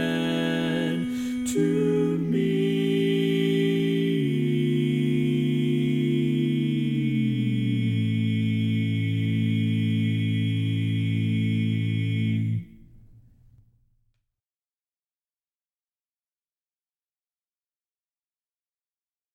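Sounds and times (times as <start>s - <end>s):
barbershop baritone singing: 0.0s - 12.5s.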